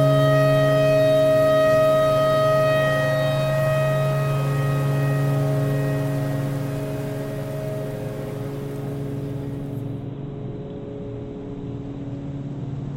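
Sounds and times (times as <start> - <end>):
tornado siren: 0.0 - 10.0.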